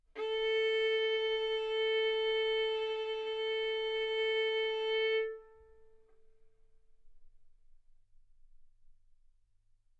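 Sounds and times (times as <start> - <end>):
violin arco on A string: 0.2 - 5.9.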